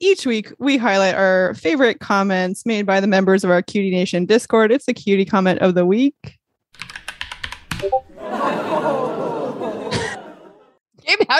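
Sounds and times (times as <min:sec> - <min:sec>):
speech: 0:00.0 - 0:06.4, 0:07.8 - 0:09.2, 0:11.1 - 0:11.3
quick run of typing-like clicks: 0:06.8 - 0:08.1
laughter: 0:07.9 - 0:10.8.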